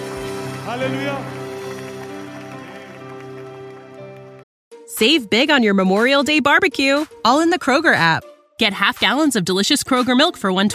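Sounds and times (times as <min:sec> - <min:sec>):
audience applause: 0:00.0 - 0:04.5
speech: 0:00.7 - 0:01.4, 0:05.0 - 0:10.7.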